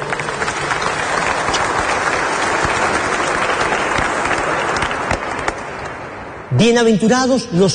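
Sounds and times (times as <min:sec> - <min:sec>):
audience applauding: 0:00.0 - 0:06.0
speech: 0:06.6 - 0:07.7.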